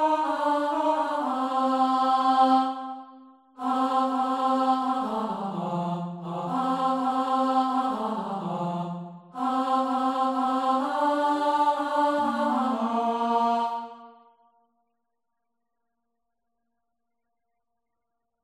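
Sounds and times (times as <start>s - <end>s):
male chorus: 0.0s - 3.0s, 3.6s - 14.1s.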